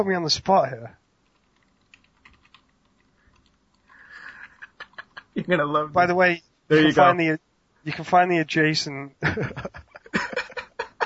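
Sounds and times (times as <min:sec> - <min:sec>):
speech: 0:00.0 - 0:01.0, 0:05.4 - 0:09.9
typing on a computer keyboard: 0:01.2 - 0:03.9
laughter: 0:04.2 - 0:05.6, 0:09.2 - 0:11.0.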